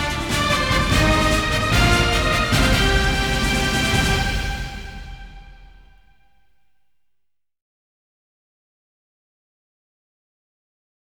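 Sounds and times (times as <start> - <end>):
instrumental music: 0.0 - 6.9.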